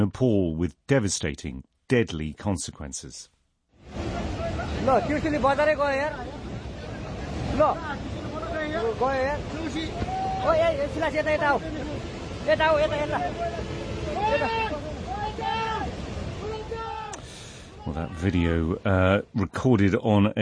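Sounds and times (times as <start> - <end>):
speech: 0.0 - 3.3, 4.8 - 6.4, 7.6 - 8.1, 8.7 - 14.9, 17.9 - 20.4
flash floodwater rushing through a town: 3.8 - 20.4
people shouting and calling out excitedly: 9.7 - 11.4, 12.7 - 18.2.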